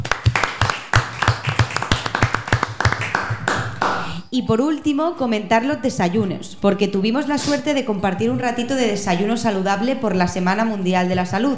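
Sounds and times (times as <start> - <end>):
applause: 0.0 - 4.1
speech: 4.3 - 11.5.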